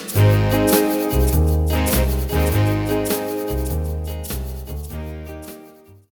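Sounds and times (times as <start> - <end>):
alto saxophone: 0.2 - 3.8, 4.9 - 5.6.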